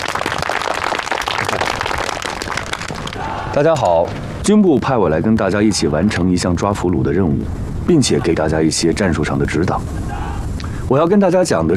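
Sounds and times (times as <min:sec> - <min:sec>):
audience applause: 0:00.0 - 0:03.6
speech: 0:03.6 - 0:10.2, 0:10.9 - 0:11.7.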